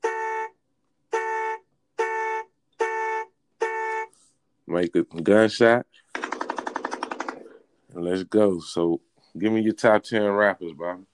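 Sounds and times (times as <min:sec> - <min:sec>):
horns sounding: 0:00.0 - 0:04.2
speech: 0:04.7 - 0:06.0, 0:07.9 - 0:11.1.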